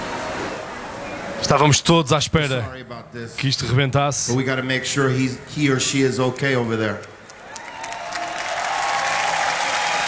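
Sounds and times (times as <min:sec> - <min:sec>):
speech: 0:01.4 - 0:07.1
audience applauding at a concert: 0:06.4 - 0:10.0.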